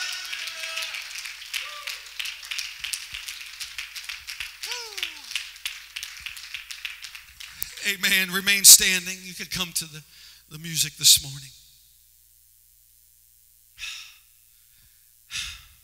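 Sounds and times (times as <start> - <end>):
scattered shouts and voices: 0.0 - 2.1, 4.6 - 5.3
audience clapping hands: 0.0 - 9.2
speech: 7.8 - 11.7.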